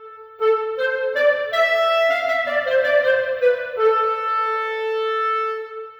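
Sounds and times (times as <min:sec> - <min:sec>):
clarinet: 0:00.0 - 0:05.9.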